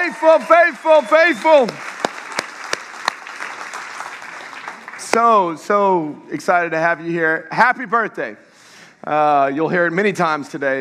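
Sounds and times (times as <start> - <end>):
audience applause: 0.0 - 5.5
speech: 0.1 - 1.9, 5.2 - 10.7.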